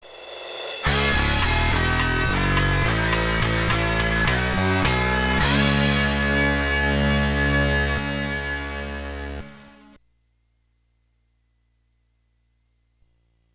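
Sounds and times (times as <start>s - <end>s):
defeat jingle: 0.8s - 10.0s.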